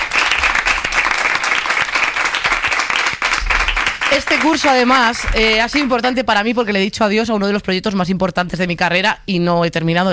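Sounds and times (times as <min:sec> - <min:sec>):
audience applause: 0:00.0 - 0:05.9
speech: 0:04.2 - 0:10.1.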